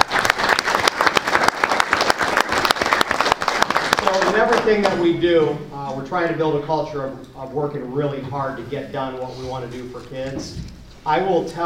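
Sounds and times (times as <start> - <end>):
audience applause: 0.0 - 4.8
speech: 4.7 - 11.6.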